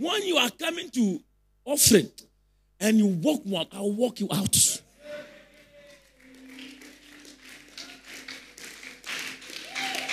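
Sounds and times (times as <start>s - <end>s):
speech: 0.0s - 5.2s
audience clapping hands: 5.5s - 10.1s.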